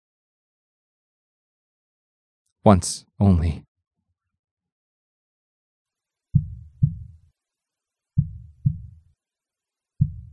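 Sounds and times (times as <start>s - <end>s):
speech: 2.6s - 3.7s
muffled heartbeat sound effect: 6.4s - 7.2s, 8.2s - 9.0s, 10.0s - 10.3s.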